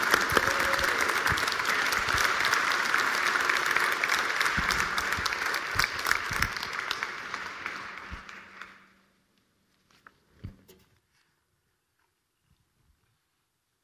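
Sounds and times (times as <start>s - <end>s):
audience applause: 0.0s - 9.1s.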